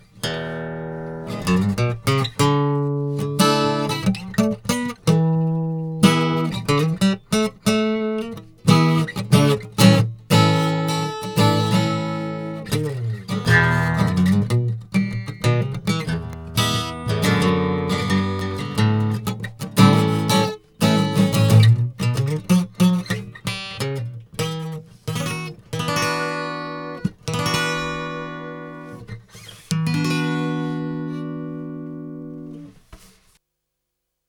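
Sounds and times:
dry guitar recorded with AMS DMX 15-80S: 0:00.0 - 0:33.1.

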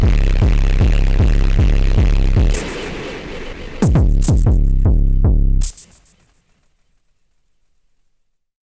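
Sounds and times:
Soma Pulsar 23 diode synthesizer patch: 0:01.0 - 0:06.4.

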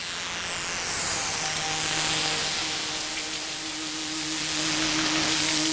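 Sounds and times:
DSS-2 synthesizer filter modulation and cross modulation: 0:00.2 - 0:05.7.

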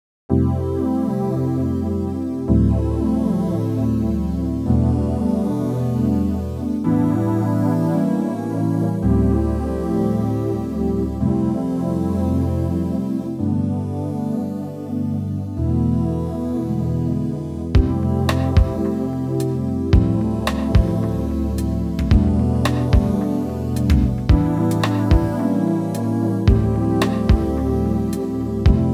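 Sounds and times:
ambient pad: 0:00.5 - 0:28.9.

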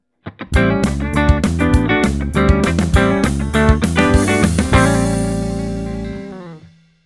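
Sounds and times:
pick: 0:00.6 - 0:06.6.

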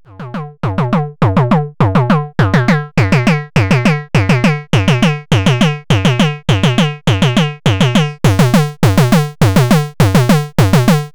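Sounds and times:
bass arpeggio: 0:00.0 - 0:11.1.

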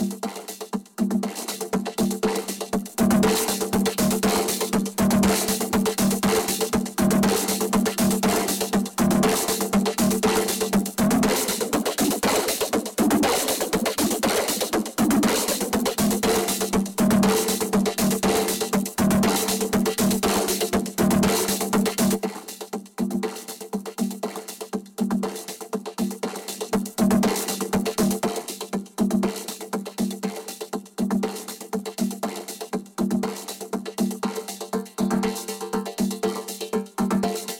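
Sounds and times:
vocoder drums: 0:00.0 - 0:37.5.

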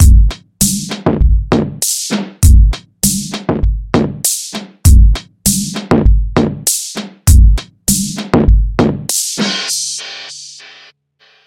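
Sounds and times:
drums: 0:00.0 - 0:11.4.

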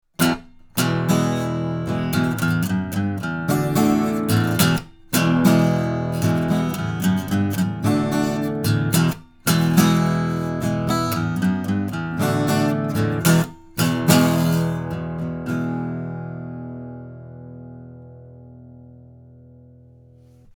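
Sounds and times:
guitar: 0:00.0 - 0:20.5.

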